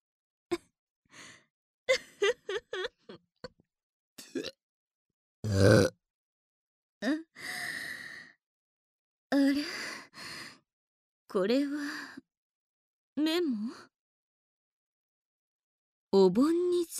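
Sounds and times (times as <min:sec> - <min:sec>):
laughter: 0:01.9 - 0:03.2
loud burp: 0:05.4 - 0:05.9
soft breathy vocal sounds and sighs: 0:07.0 - 0:08.4, 0:09.4 - 0:10.7, 0:11.7 - 0:12.2
speech: 0:11.3 - 0:12.0, 0:13.2 - 0:13.9, 0:16.1 - 0:16.9.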